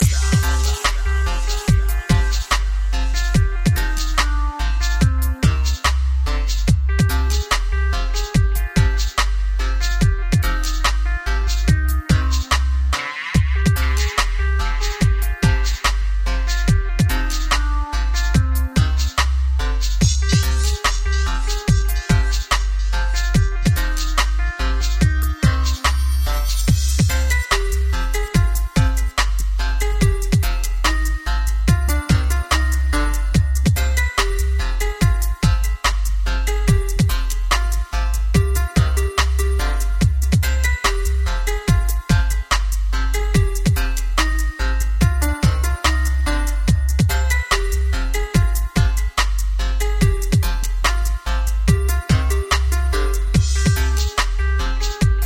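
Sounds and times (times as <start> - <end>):
dubstep music: 0.0 - 55.2.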